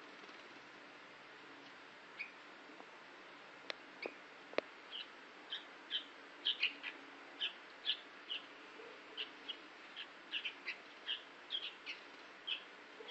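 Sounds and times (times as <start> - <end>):
sooty-headed bulbul singing chattering phrases: 4.9 - 13.0.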